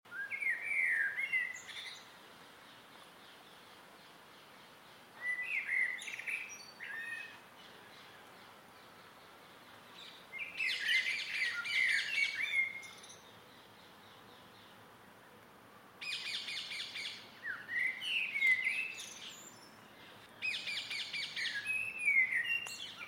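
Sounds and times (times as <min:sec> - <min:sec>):
close blackbird singing in an evening garden: 0:00.1 - 0:14.8, 0:16.0 - 0:23.0.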